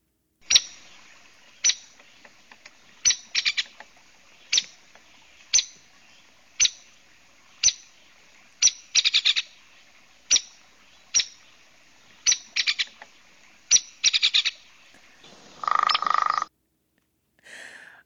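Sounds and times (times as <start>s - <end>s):
hairy woodpecker call: 0.4s - 5.9s, 6.6s - 6.9s, 7.6s - 8.0s, 8.6s - 9.6s, 10.2s - 11.5s, 12.2s - 16.5s.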